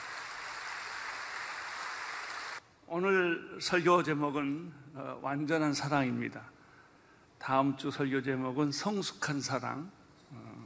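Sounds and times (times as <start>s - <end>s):
audience applauding: 0.0s - 2.6s
speech: 2.9s - 6.6s, 7.4s - 10.4s.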